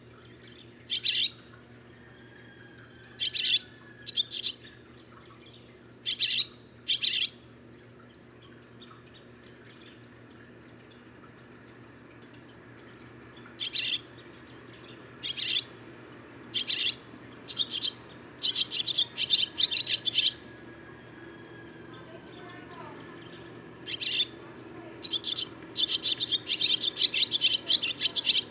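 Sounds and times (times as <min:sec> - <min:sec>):
barn swallow producing sharp buzzy chirp notes: 0:00.3 - 0:01.4, 0:03.2 - 0:07.3, 0:13.6 - 0:14.6, 0:15.2 - 0:15.6, 0:16.6 - 0:20.4, 0:23.1 - 0:24.4, 0:25.0 - 0:28.4.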